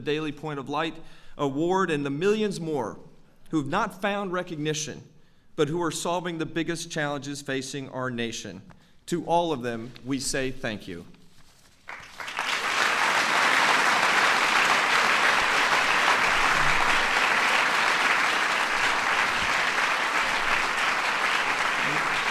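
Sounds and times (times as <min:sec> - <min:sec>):
speech: 0:00.0 - 0:11.2
audience applause: 0:11.9 - 0:22.2.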